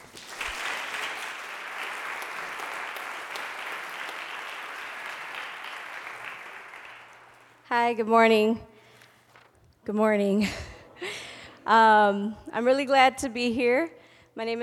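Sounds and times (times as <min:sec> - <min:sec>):
audience applause at a convocation welcoming a speaker: 0:00.0 - 0:07.6
speech: 0:07.7 - 0:08.7, 0:09.8 - 0:10.7, 0:11.7 - 0:14.6.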